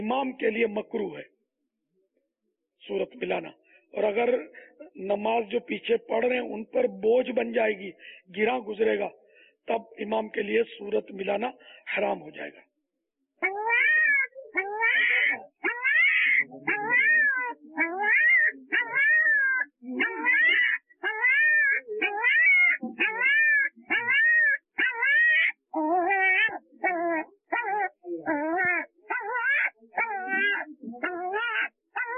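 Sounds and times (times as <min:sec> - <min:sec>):
speech: 0:00.0 - 0:01.4, 0:02.8 - 0:12.7, 0:13.4 - 0:15.5, 0:16.5 - 0:19.2, 0:19.8 - 0:21.2, 0:25.8 - 0:29.2
puppy pinned under its mother whining in pain: 0:13.4 - 0:32.1.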